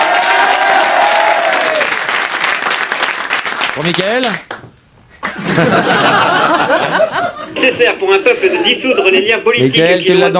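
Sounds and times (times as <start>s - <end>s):
audience applause for a contestant: 0.0s - 4.6s
speech: 3.8s - 4.5s, 5.3s - 10.3s
laughter: 5.2s - 9.4s.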